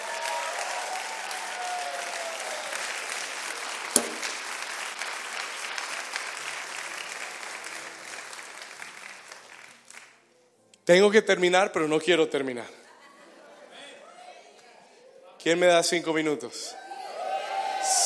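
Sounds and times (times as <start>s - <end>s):
audience applauding loudly: 0.0s - 10.2s, 17.0s - 18.0s
speech: 10.9s - 12.8s, 15.4s - 16.8s
laughter: 12.8s - 14.8s.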